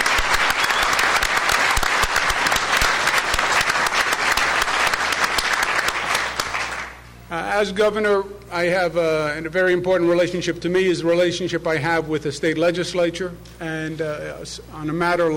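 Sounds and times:
audience applause: 0.0s - 7.0s
speech: 7.6s - 15.3s.

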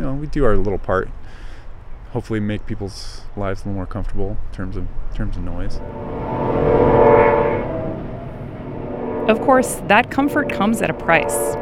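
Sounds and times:
speech: 0.2s - 1.4s, 2.1s - 7.2s, 9.3s - 11.6s
train passing: 4.2s - 11.6s
train horn blaring a steady chord: 5.6s - 11.6s.

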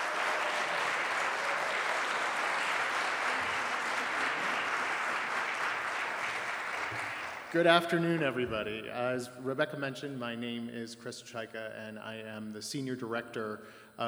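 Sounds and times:
Fairbanks audience applause welcoming a guest speaker: 0.0s - 8.1s
speech: 7.5s - 14.0s.

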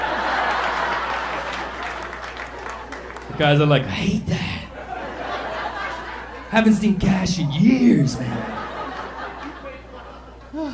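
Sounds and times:
laughter: 0.0s - 3.4s, 4.0s - 10.7s
audience clapping: 0.0s - 3.7s
speech: 3.4s - 4.6s, 6.5s - 8.6s.

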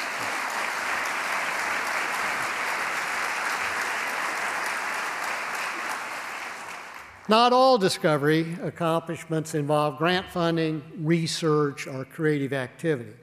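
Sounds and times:
applause: 0.0s - 7.3s
speech: 7.3s - 13.2s.

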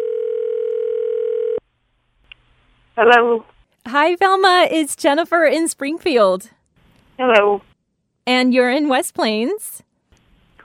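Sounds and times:
telephone dial tone of an outgoing phone call: 0.0s - 1.6s
speech: 3.0s - 6.6s, 7.2s - 9.8s.

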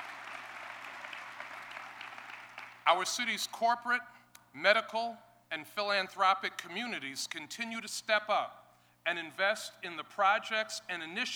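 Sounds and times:
audience applause at a Buffalo civic address honoring the Hispanic Heritage Council of Western New York: 0.0s - 2.8s
speech: 2.9s - 11.3s.

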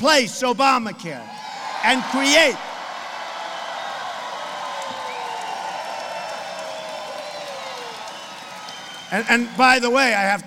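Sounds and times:
speech: 0.0s - 2.7s, 9.1s - 10.4s
crowd applauding at a political rally: 1.7s - 10.4s
whistles and whoops: 3.4s - 9.8s.

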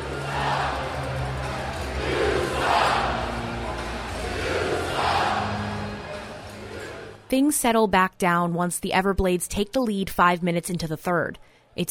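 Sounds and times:
large hockey arena crowd roaring and shouting: 0.0s - 7.3s
speech: 7.3s - 11.8s.

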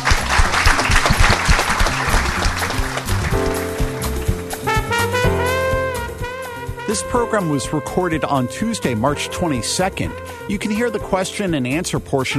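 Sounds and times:
audience clapping at end of program: 0.0s - 5.6s
music: 0.0s - 12.3s
speech: 6.9s - 12.3s.

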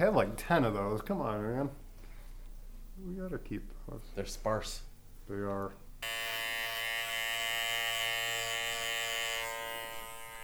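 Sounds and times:
speech: 0.0s - 1.8s, 3.0s - 6.2s
electric shaver buzzing while shaving chest and neck hair: 6.0s - 10.4s.

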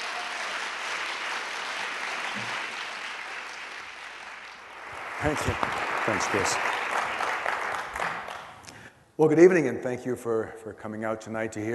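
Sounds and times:
audience applause welcoming a speaker: 0.0s - 8.7s
speech: 5.2s - 6.7s, 9.2s - 11.7s.

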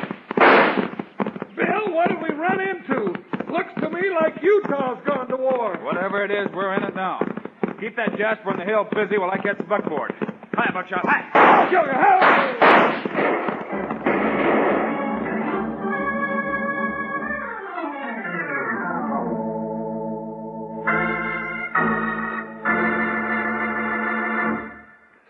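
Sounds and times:
six-gun gunshots: 0.0s - 1.1s, 11.2s - 15.0s
speech: 1.8s - 13.4s
sustained musical tones: 14.7s - 25.0s.

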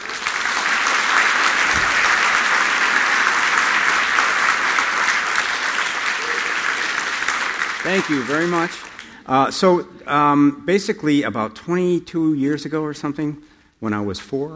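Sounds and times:
audience applause welcoming author George Saunders to the stage: 0.0s - 9.2s
speech: 7.9s - 14.5s.

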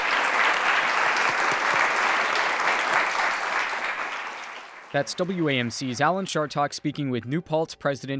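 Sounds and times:
audience applause for a university president at a live show in a theater: 0.0s - 5.6s
speech: 4.9s - 8.1s.

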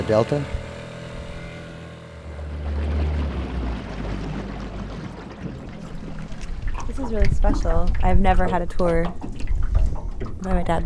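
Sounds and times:
speech: 0.1s - 0.6s, 7.0s - 9.3s, 10.2s - 10.8s
paddling a small boat through water: 2.0s - 10.8s
deep continuous low rumble: 2.2s - 10.8s.

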